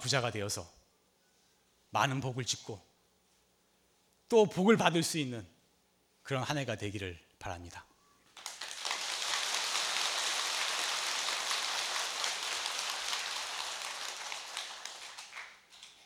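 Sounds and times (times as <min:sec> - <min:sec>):
speech: 0:00.0 - 0:00.8, 0:01.9 - 0:02.9, 0:04.3 - 0:05.5, 0:06.3 - 0:07.9
applause: 0:08.4 - 0:16.0.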